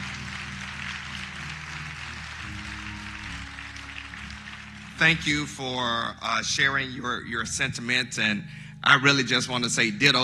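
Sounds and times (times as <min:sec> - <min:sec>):
audience applause: 0:00.0 - 0:05.9
speech: 0:05.0 - 0:10.2.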